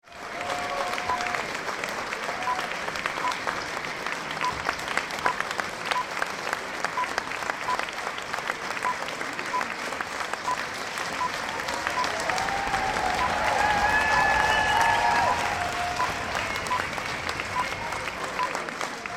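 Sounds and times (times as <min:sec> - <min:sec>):
applause: 0:00.0 - 0:19.1.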